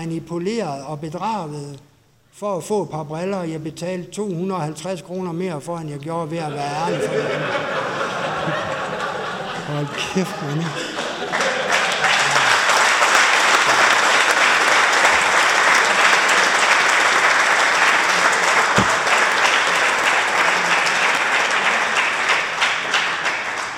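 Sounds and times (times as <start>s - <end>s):
speech: 0.0s - 7.9s, 9.7s - 10.9s
laughter: 6.5s - 12.9s
audience applause: 9.0s - 23.7s.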